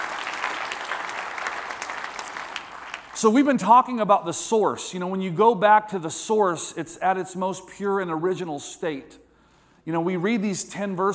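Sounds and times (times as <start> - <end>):
audience applause: 0.0 - 3.2
speech: 3.2 - 9.2, 9.8 - 11.1.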